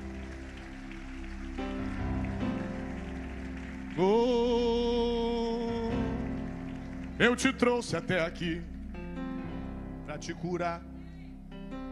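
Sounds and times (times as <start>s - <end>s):
church audience applauding: 0.0s - 8.9s
speech: 4.0s - 4.6s, 7.2s - 8.7s, 10.2s - 10.9s.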